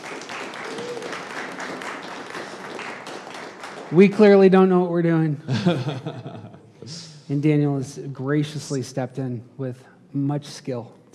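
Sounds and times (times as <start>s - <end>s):
audience applause at a talk on stress and security: 0.0s - 4.5s
speech: 3.9s - 11.1s.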